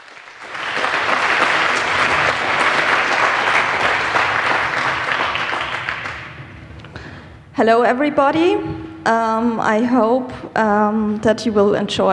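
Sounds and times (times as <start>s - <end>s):
audience applause: 0.0s - 7.1s
speech: 7.6s - 12.1s.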